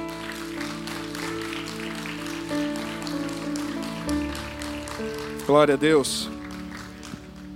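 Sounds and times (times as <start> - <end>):
audience applauding: 0.0 - 7.5
speech: 5.5 - 6.4.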